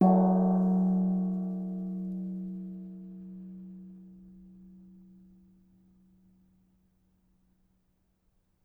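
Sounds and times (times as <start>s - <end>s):
gong: 0.0s - 4.9s.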